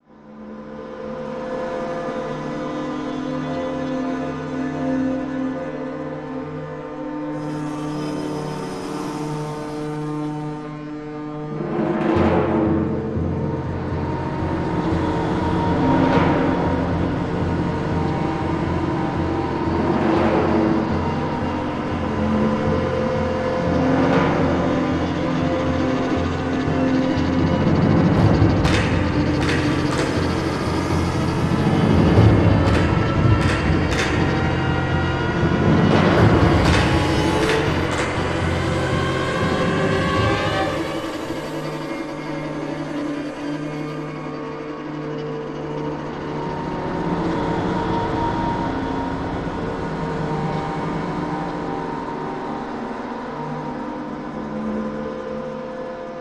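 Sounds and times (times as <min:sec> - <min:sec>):
scary strings: 0:00.0 - 0:56.1.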